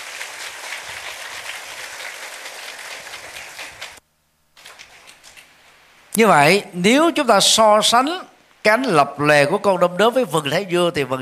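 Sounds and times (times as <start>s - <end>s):
loud audience applause: 0.0s - 4.0s
speech: 6.2s - 11.2s.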